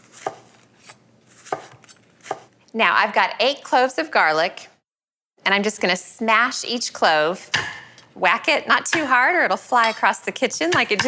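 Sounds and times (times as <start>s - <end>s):
soft slicing cuts through onions: 0.0s - 2.5s
speech: 2.8s - 4.7s, 5.5s - 7.6s, 8.2s - 11.0s.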